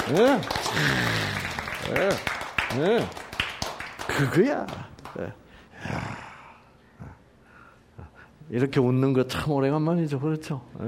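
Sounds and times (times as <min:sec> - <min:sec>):
crowd clapping: 0:00.0 - 0:05.3
speech: 0:00.1 - 0:03.2, 0:04.2 - 0:06.0, 0:08.5 - 0:10.8.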